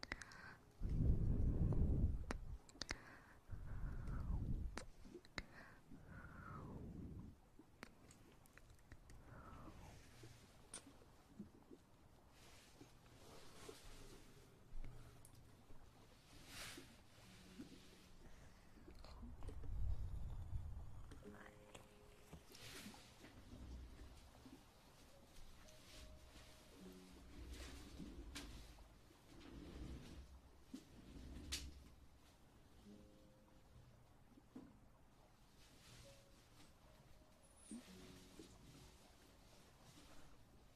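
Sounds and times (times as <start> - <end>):
ear eating and ear massage sounds: 0.0 - 11.8, 12.4 - 32.0.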